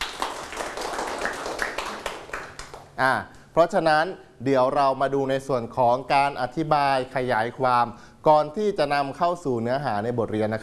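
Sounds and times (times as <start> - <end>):
crowd clapping: 0.0 - 3.0
speech: 3.0 - 10.6.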